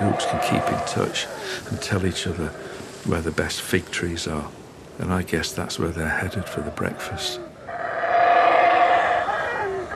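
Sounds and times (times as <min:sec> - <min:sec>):
animals roaring and howling across forest canopy: 0:00.0 - 0:02.8, 0:06.3 - 0:09.9
speech: 0:00.0 - 0:07.5.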